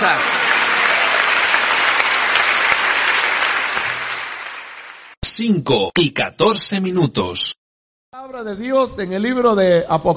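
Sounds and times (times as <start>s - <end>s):
audience clapping hands: 0.0s - 5.2s
speech: 5.4s - 10.1s.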